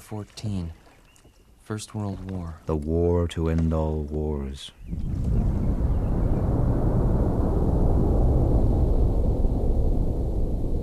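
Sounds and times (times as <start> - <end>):
speech: 0.1 - 0.8, 1.7 - 5.8
thunder: 4.9 - 10.8.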